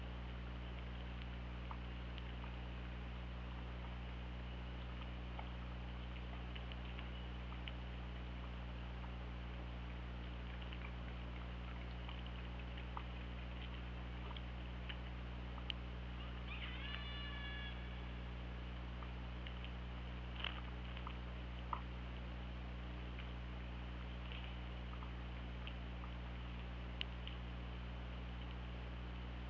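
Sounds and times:
low underwater hum: 0:00.0 - 0:29.4
faint clicks: 0:00.6 - 0:09.2, 0:09.8 - 0:17.1, 0:18.7 - 0:22.3, 0:24.0 - 0:27.6, 0:28.3 - 0:29.2
orca pulsed call: 0:16.0 - 0:18.9.

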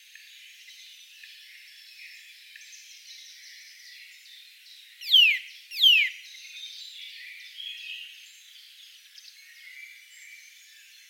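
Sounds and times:
Eurasian nuthatch Sitta europaea calls: 0:05.0 - 0:06.2.

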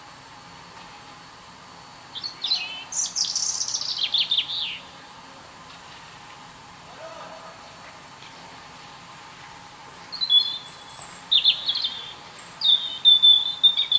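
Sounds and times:
European robin Erithacus rubecula singing: 0:02.2 - 0:04.9, 0:10.1 - 0:13.9.

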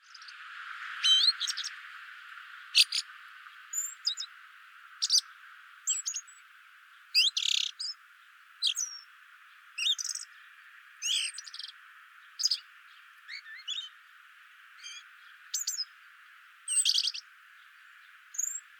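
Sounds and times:
common blackbird calling: 0:01.0 - 0:01.7, 0:02.8 - 0:03.1, 0:03.7 - 0:04.3, 0:05.0 - 0:05.3, 0:05.9 - 0:08.0, 0:08.6 - 0:09.1, 0:09.8 - 0:14.0, 0:14.8 - 0:16.0, 0:16.7 - 0:18.7.

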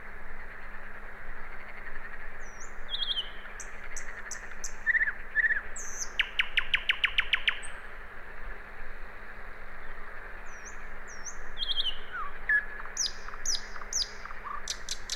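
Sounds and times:
common nightingale song Luscinia megarhynchos: 0:01.3 - 0:07.8, 0:09.8 - 0:15.1.

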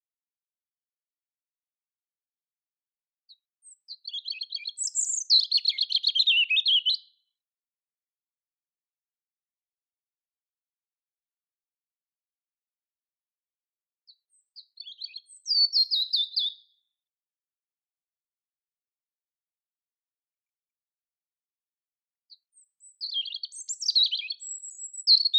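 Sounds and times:
European robin singing: 0:03.6 - 0:07.2, 0:14.1 - 0:16.8, 0:22.3 - 0:25.3.

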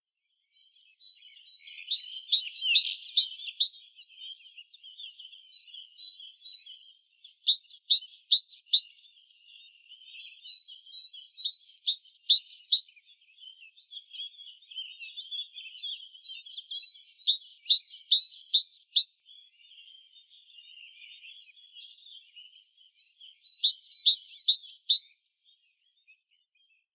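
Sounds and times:
great tit calling: 0:01.8 - 0:03.7, 0:07.3 - 0:09.0, 0:11.1 - 0:12.8, 0:16.6 - 0:19.0, 0:23.4 - 0:25.0.

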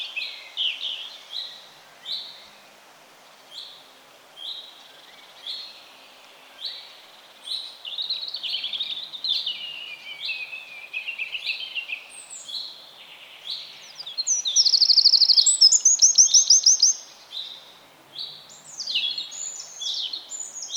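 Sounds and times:
steady hiss: 0:00.0 - 0:20.7
Eurasian wren trilling song: 0:07.5 - 0:20.7.

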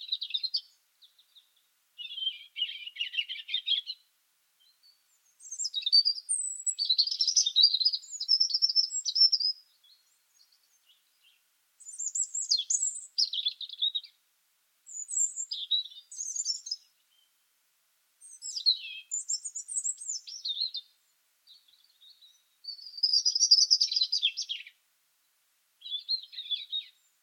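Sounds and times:
European robin singing: 0:00.0 - 0:14.2, 0:14.8 - 0:17.5, 0:18.2 - 0:24.8, 0:25.8 - 0:27.2.

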